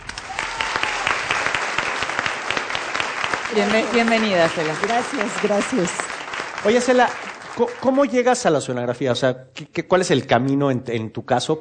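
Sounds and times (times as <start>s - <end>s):
applause: 0.0s - 8.8s
speech: 3.5s - 11.5s.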